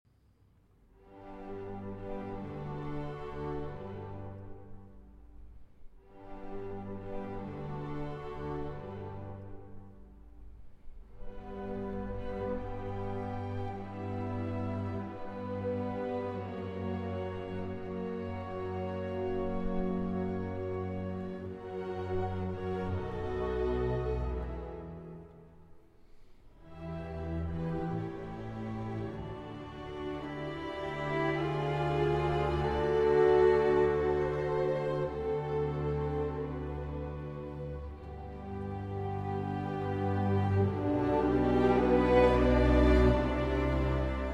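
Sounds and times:
violin concerto in D major slow movement: 0:00.9 - 0:44.3.

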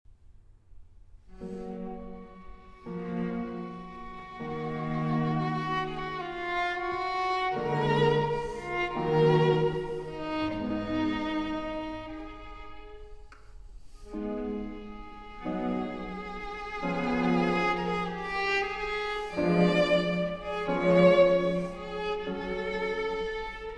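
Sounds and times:
quartet playing a largo: 0:01.4 - 0:23.7.

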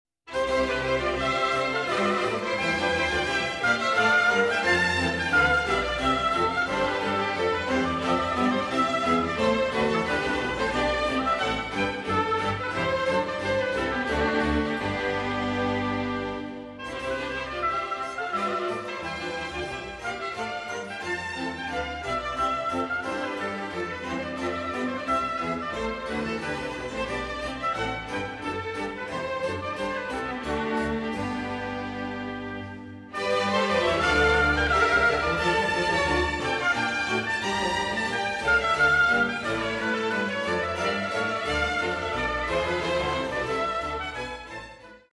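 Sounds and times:
orchestral suite courante: 0:00.3 - 0:45.1.

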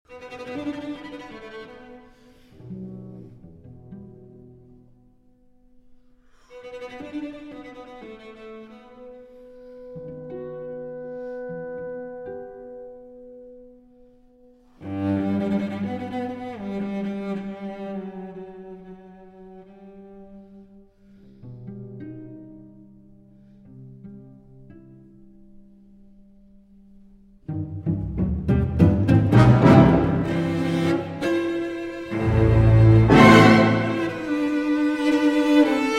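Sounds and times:
cello concerto: 0:00.1 - 0:25.8, 0:27.4 - 0:35.9.

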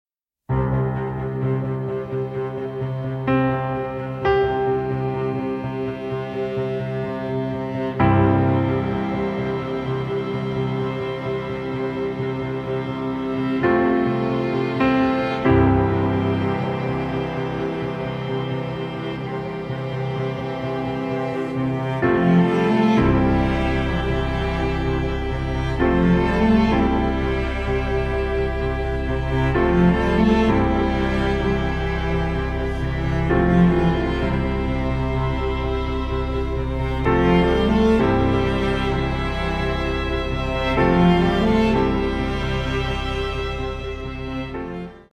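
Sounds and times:
piano quintet: 0:00.5 - 0:45.1.

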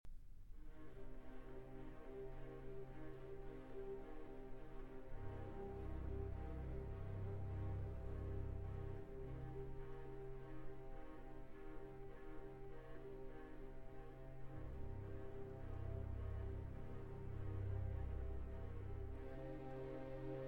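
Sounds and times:
concerto for violin and orchestra: 0:00.7 - 0:20.4.

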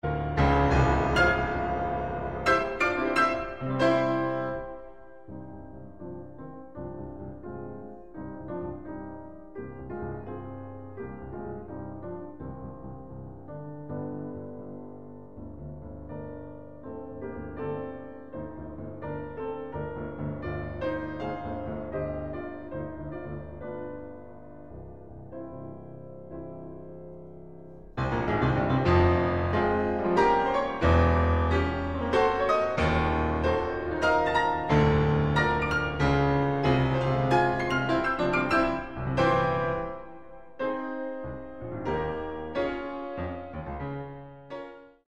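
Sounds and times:
piano sonata in F minor allegro maestoso: 0:00.0 - 0:45.0.

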